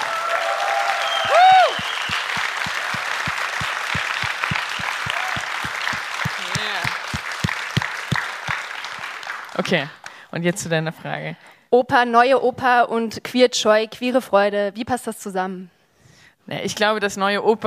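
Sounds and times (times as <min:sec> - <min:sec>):
whoop: 0:00.0 - 0:02.3, 0:05.0 - 0:05.6
audience applause in a large room: 0:00.0 - 0:10.2
speech: 0:09.6 - 0:15.8, 0:16.5 - 0:17.6.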